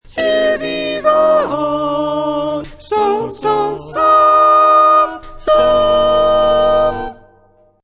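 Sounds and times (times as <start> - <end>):
soprano singing a chorale: 0.0 - 7.4.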